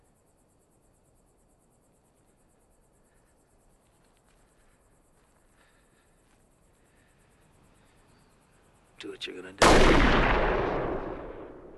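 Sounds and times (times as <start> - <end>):
speech: 9.0 - 10.9
gunshot in a TV drama scene: 9.6 - 11.7.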